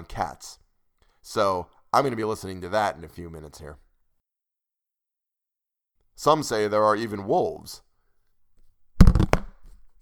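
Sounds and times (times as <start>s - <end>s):
speech: 0.0s - 0.6s, 1.2s - 3.8s, 6.2s - 7.8s
pop filter banging against microphone: 9.0s - 9.8s.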